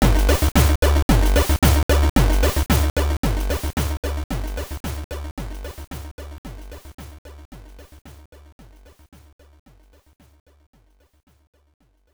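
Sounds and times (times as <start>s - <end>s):
neutral dance music: 0.0s - 4.8s.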